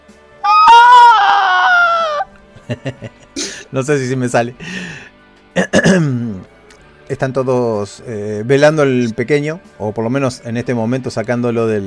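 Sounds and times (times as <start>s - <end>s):
woman's anguished scream: 0.4s - 2.3s
laughter: 0.5s - 3.6s
speech: 2.7s - 4.8s, 5.8s - 6.2s, 7.1s - 11.8s.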